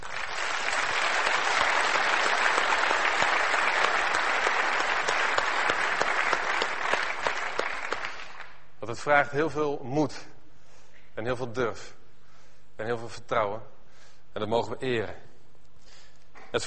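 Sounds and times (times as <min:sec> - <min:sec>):
audience applause: 0:00.0 - 0:08.6
speech: 0:08.9 - 0:10.3, 0:11.2 - 0:12.0, 0:12.8 - 0:13.7, 0:14.4 - 0:15.3.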